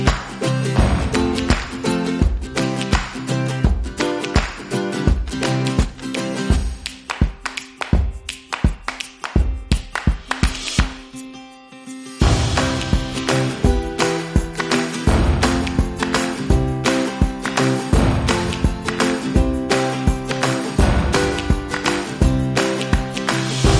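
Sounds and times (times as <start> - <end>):
drums: 0.0 - 11.2, 12.1 - 23.7
guitars: 0.0 - 23.7
ukulele rhythm: 0.0 - 23.7.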